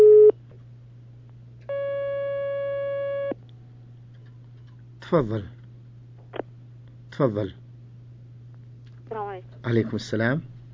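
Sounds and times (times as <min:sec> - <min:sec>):
telephone line tone as call connects: 0:00.0 - 0:00.3, 0:01.7 - 0:03.4
constant low hum: 0:00.0 - 0:10.7
speech: 0:05.1 - 0:05.6, 0:07.2 - 0:07.6, 0:09.7 - 0:10.5.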